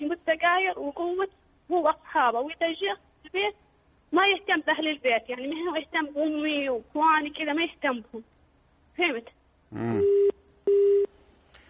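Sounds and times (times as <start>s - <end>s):
speech: 0.7s - 3.6s, 4.2s - 8.3s, 9.0s - 10.3s
voice fragment: 9.7s - 10.0s
telephone busy tone after a dropped call from Yemen: 10.0s - 11.1s.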